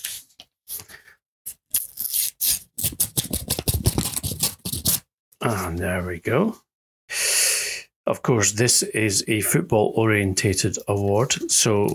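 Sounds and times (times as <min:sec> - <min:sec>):
paper tearing and rustling as a golden envelope is opened: 0:01.7 - 0:05.0
speech: 0:05.4 - 0:06.6, 0:08.1 - 0:11.9.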